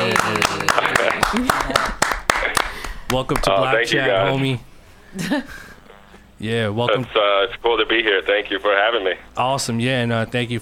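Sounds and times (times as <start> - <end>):
voices and cheering: 0.0 - 2.8
round of applause: 0.0 - 3.5
speech: 3.1 - 5.7, 6.4 - 10.5.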